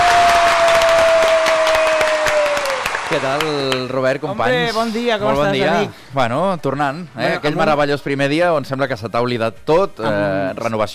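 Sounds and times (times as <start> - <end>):
studio audience applause: 0.0 - 4.2
speech: 3.2 - 10.9.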